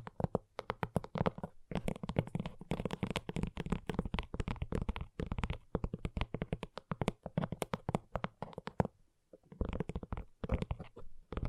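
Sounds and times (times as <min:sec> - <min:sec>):
gentle tapping: 0:00.0 - 0:11.4.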